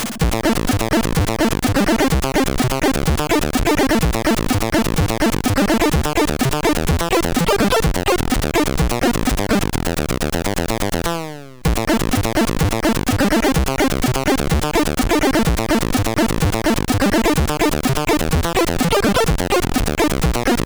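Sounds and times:
stereo SID chip boss battle game music: 0.2 - 20.6.

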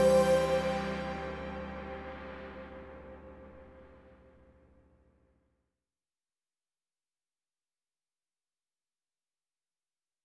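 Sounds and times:
trance music: 0.0 - 4.3.

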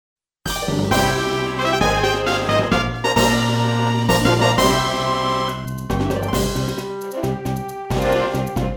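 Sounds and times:
victory fanfare: 0.5 - 8.6.

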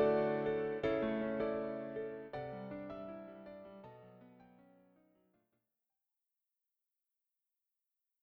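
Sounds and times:
piano: 0.0 - 5.4.

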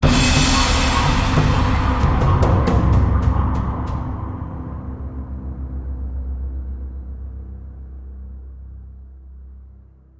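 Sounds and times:
heavy combat music outro: 0.0 - 5.5.

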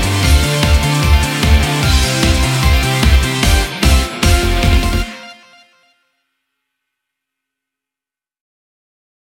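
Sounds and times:
instrumental music: 0.0 - 6.2.

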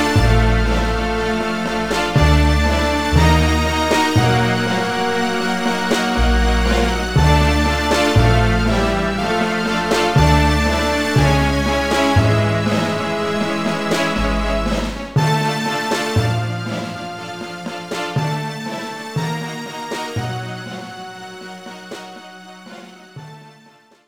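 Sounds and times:
looped tune: 0.0 - 21.2.

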